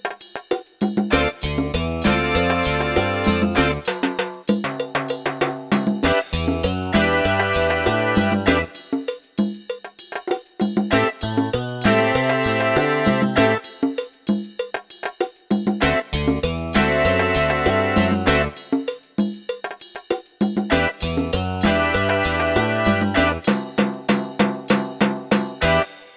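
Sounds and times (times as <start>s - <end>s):
snare drum: 0.0s - 26.1s
bass drum: 1.0s - 3.9s, 5.8s - 8.8s, 10.9s - 13.6s, 15.8s - 18.6s, 20.7s - 25.9s.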